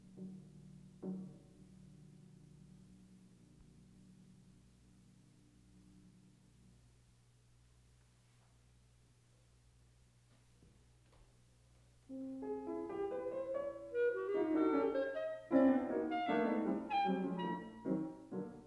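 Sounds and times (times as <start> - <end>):
piano: 0.0 - 6.9, 12.0 - 18.6
clarinet: 12.1 - 18.6.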